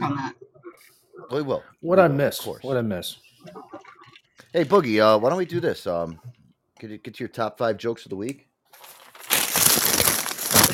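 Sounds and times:
speech: 0.8s - 3.6s, 4.5s - 9.0s
paper being crumpled up: 8.8s - 10.7s.

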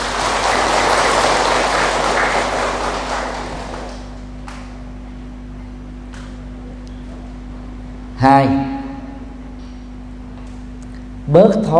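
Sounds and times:
audience applause: 0.0s - 4.7s
speech: 8.2s - 8.6s, 11.4s - 11.7s.

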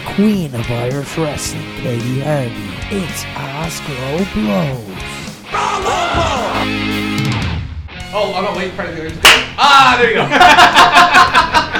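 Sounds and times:
speech: 0.2s - 5.2s, 8.1s - 11.4s
laughter: 5.6s - 6.8s, 9.9s - 11.7s
hand clap: 9.2s - 9.6s.

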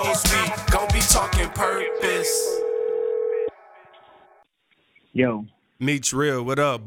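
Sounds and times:
speech: 1.1s - 2.6s, 5.2s - 6.8s
telephone ringing: 1.4s - 4.4s
phone-line hiss: 1.6s - 3.5s.

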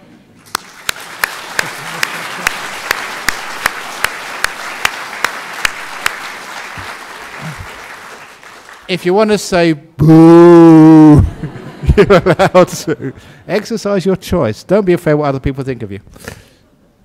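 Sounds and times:
audience clapping: 0.4s - 9.0s
laughter: 1.6s - 2.7s, 11.2s - 13.4s
speech: 8.9s - 11.2s, 12.0s - 16.3s.

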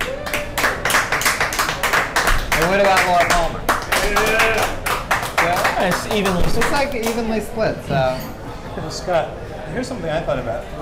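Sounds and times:
audience round of applause: 0.0s - 7.3s
speech: 2.7s - 4.6s, 5.8s - 10.8s.

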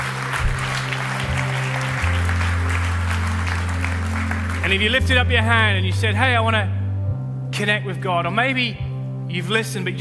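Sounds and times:
church audience applause: 0.0s - 4.9s
speech: 4.7s - 6.8s, 7.6s - 9.9s.

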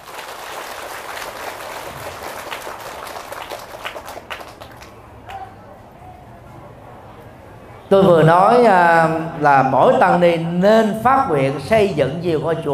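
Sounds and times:
audience applause: 0.0s - 5.5s
speech: 7.9s - 12.7s.

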